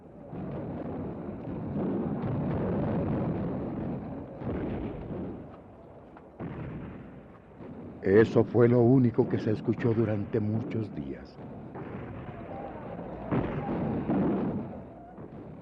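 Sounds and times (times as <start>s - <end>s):
artillery fire: 0.2s - 15.6s
speech: 8.1s - 11.6s.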